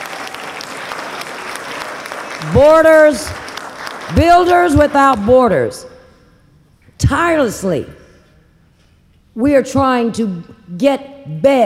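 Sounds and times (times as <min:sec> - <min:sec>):
audience applause: 0:00.0 - 0:04.7
speech: 0:02.4 - 0:03.4, 0:04.1 - 0:05.9, 0:07.0 - 0:08.0, 0:09.4 - 0:11.6.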